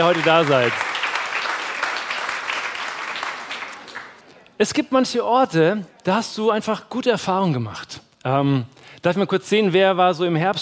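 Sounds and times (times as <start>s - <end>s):
speech: 0.0s - 1.0s, 4.6s - 10.6s
crowd clapping: 0.0s - 4.4s.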